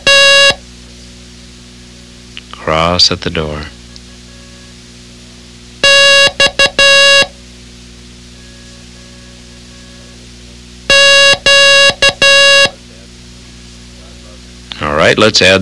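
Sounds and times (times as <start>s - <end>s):
loud buzzy Morse code beeps: 0.0s - 0.6s, 5.8s - 7.3s, 8.4s - 10.2s, 10.9s - 12.8s
speech: 2.7s - 3.8s, 15.1s - 15.5s.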